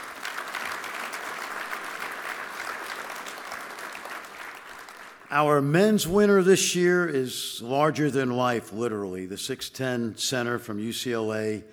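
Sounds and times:
audience applause at an awards event: 0.0 - 5.5
speech: 5.3 - 11.7.

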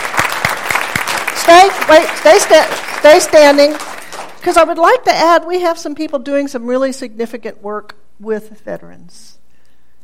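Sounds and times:
audience applause: 0.0 - 4.4
speech: 1.5 - 9.4.

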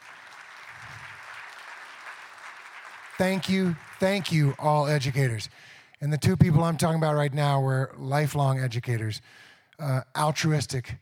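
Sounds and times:
audience round of applause: 0.0 - 5.4
speech: 3.2 - 11.0.

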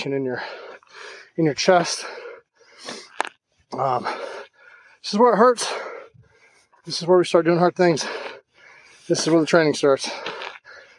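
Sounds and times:
speech: 0.0 - 0.6, 1.4 - 2.2, 3.7 - 4.2, 5.0 - 5.9, 6.8 - 8.2, 9.1 - 10.3
heavy labored breathing: 0.2 - 6.8, 7.8 - 10.9.

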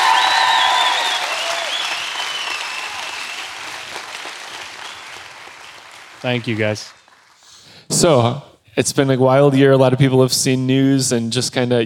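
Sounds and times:
sizable crowd applauding to welcome a guest: 0.0 - 7.6
whistles: 0.1 - 3.8, 4.5 - 5.3
speech: 6.2 - 7.0, 8.0 - 11.8.

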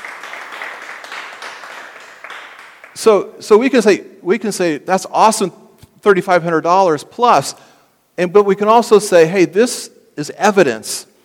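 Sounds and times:
audience applause: 0.0 - 3.0
speech: 3.0 - 11.1.

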